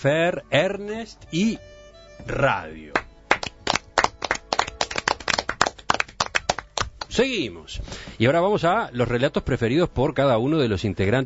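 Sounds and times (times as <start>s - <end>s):
speech: 0.0s - 3.0s, 7.1s - 11.2s
audience applause: 3.3s - 6.9s.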